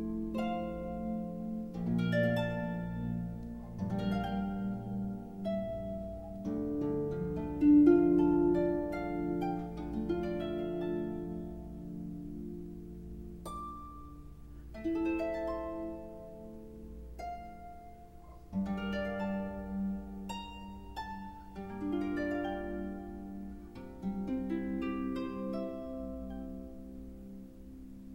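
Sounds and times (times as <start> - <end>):
instrumental harp praise music: 0.0 - 28.1.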